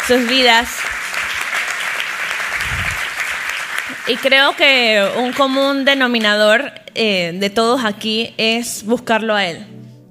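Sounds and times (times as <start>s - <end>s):
audience applause: 0.0s - 5.5s
speech: 0.1s - 1.0s, 4.0s - 10.1s.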